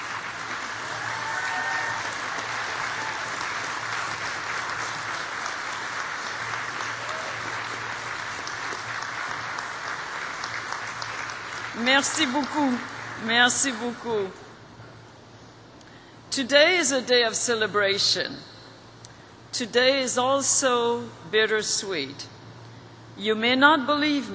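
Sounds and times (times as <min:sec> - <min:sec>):
applause: 0:00.0 - 0:13.8
speech: 0:11.8 - 0:14.4, 0:16.4 - 0:18.5, 0:19.6 - 0:22.3, 0:23.2 - 0:24.3.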